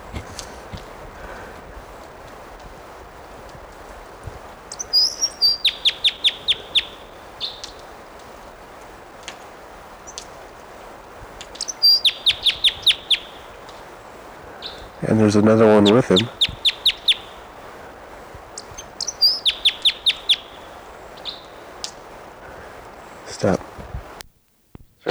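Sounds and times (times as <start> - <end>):
wild bird song: 0.0 - 24.2
speech: 15.2 - 16.4.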